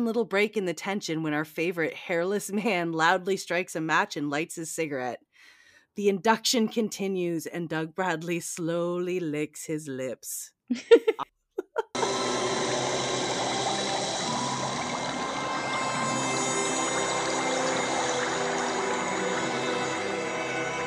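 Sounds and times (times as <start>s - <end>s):
speech: 0.0s - 11.2s
faint tonal whine: 12.0s - 20.8s
hand sizzling in boiling water: 12.0s - 20.8s.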